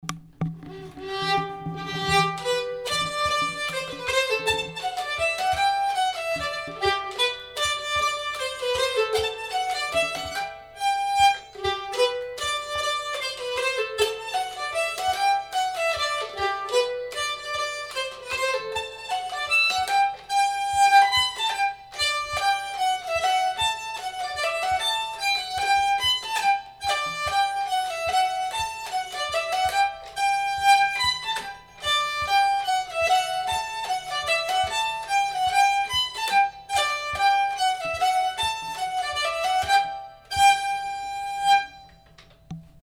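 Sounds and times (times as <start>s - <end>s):
hambo polka music: 0.0s - 42.8s.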